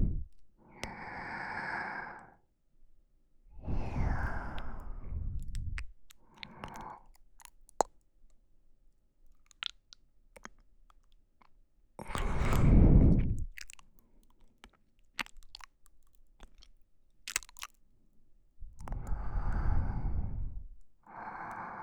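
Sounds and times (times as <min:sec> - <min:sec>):
sleeping breathing: 0:00.8 - 0:02.4, 0:03.6 - 0:05.8, 0:12.0 - 0:13.5, 0:18.9 - 0:21.8.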